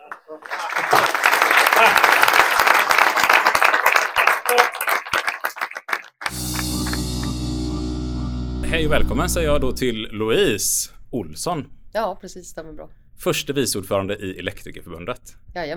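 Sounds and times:
audience applause: 0:00.0 - 0:07.0
steady low hum: 0:06.3 - 0:15.1
speech: 0:08.8 - 0:15.7.

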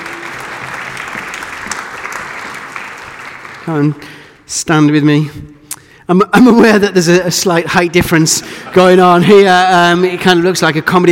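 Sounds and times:
audience applause: 0:00.0 - 0:04.4
speech: 0:03.7 - 0:05.5, 0:06.1 - 0:11.1.

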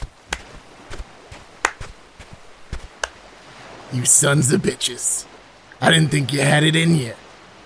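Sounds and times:
slow clapping: 0:00.3 - 0:00.6, 0:01.6 - 0:01.9
speech: 0:03.9 - 0:07.2.

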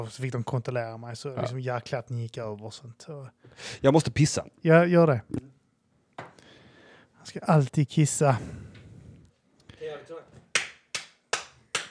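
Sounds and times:
speech: 0:00.0 - 0:05.5, 0:07.2 - 0:08.7
hand clapping: 0:10.5 - 0:11.8.

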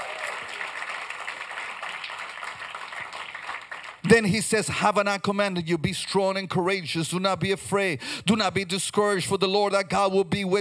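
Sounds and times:
audience clapping hands in applause: 0:00.0 - 0:04.5
speech: 0:04.1 - 0:10.5.

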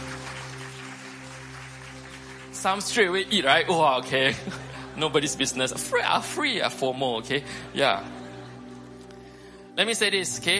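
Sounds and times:
crowd clapping and cheering: 0:00.0 - 0:04.3
speech: 0:02.6 - 0:08.2, 0:09.8 - 0:10.5
laughter: 0:03.7 - 0:09.3.

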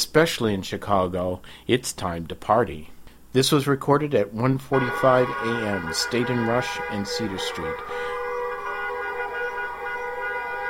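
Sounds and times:
speech: 0:00.0 - 0:08.2
cars honking at night: 0:04.7 - 0:10.6
people screaming: 0:04.8 - 0:10.6.

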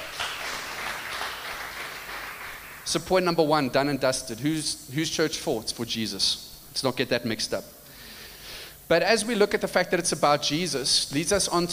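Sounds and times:
audience clapping: 0:00.0 - 0:03.1
speech: 0:02.9 - 0:07.8, 0:08.9 - 0:11.7.

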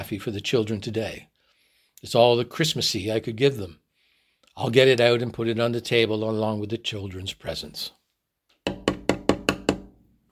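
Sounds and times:
speech: 0:00.0 - 0:01.3, 0:02.0 - 0:03.8, 0:04.5 - 0:08.0
knocking on a door: 0:08.7 - 0:09.9.

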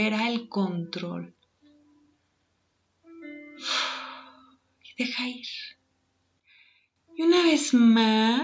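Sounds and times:
speech: 0:00.0 - 0:01.4, 0:03.6 - 0:04.0, 0:05.0 - 0:05.8, 0:07.2 - 0:08.4
breathy exhale during a guided meditation: 0:03.6 - 0:04.5.

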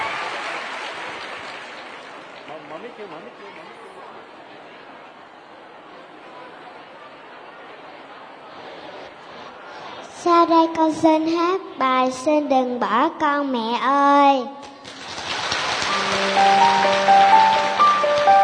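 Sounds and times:
audience applause welcoming a performer: 0:00.0 - 0:03.7, 0:14.8 - 0:18.4
speech: 0:02.8 - 0:04.0, 0:10.2 - 0:14.7.

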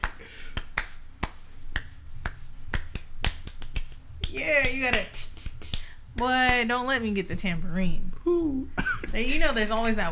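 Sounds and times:
sharp hand claps off the beat: 0:00.0 - 0:06.8
low steady hum: 0:00.0 - 0:10.1
speech: 0:04.4 - 0:05.4, 0:06.2 - 0:10.1.

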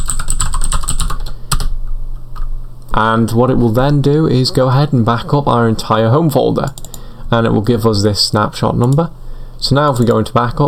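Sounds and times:
password typed on a computer keyboard: 0:00.0 - 0:01.7, 0:06.6 - 0:07.1
speech: 0:03.0 - 0:10.6.

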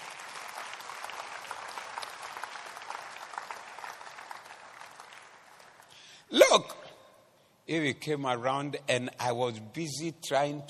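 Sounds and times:
audience clapping: 0:00.0 - 0:06.1
speech: 0:06.3 - 0:06.8, 0:07.7 - 0:10.6.

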